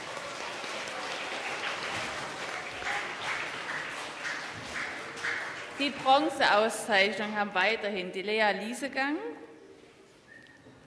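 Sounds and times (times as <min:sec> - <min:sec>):
audience applause: 0:00.0 - 0:06.0
speech: 0:05.8 - 0:09.4.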